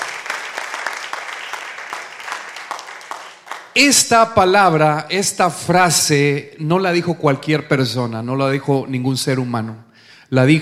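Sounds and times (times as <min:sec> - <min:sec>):
audience applause: 0:00.0 - 0:03.8
speech: 0:03.7 - 0:10.6.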